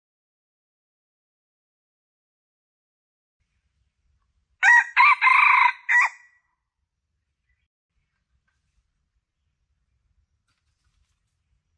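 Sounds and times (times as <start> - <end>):
red junglefowl crowing: 4.6 - 6.4.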